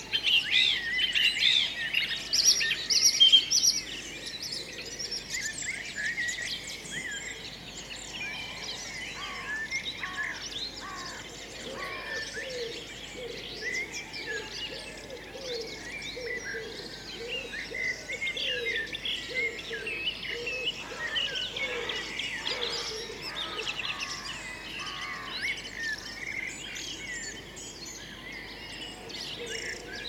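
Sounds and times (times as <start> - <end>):
birds singing: 0.0 - 30.0.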